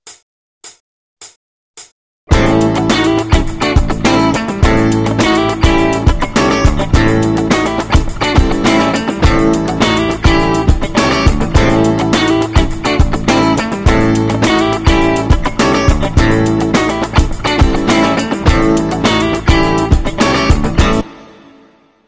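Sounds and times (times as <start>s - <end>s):
funk music: 2.3s - 21.7s.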